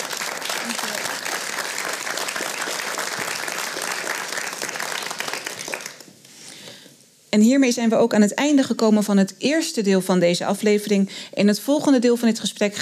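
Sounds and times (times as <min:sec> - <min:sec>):
warm applause from audience: 0:00.0 - 0:06.2
speech: 0:07.3 - 0:12.8.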